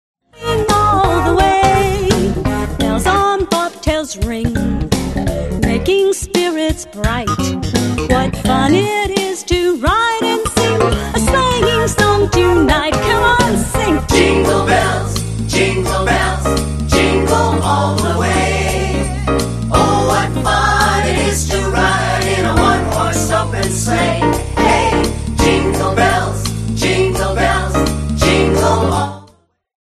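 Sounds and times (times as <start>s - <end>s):
jazz christmas tune: 0.4s - 29.2s.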